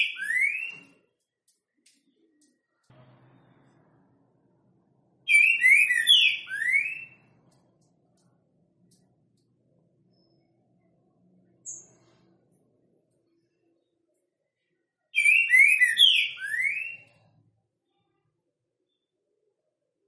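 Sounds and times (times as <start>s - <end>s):
green-winged saltator loud whistled song of slurred notes: 5.3s - 7.3s, 15.2s - 17.2s.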